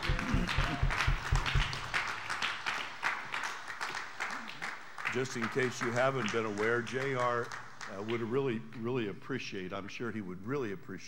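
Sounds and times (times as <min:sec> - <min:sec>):
crowd applause: 0:00.0 - 0:07.9
speech: 0:05.2 - 0:11.0.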